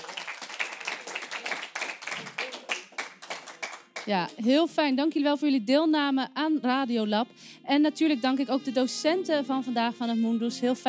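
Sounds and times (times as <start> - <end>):
group of students applauding: 0.0 - 4.2
speech: 4.0 - 10.8.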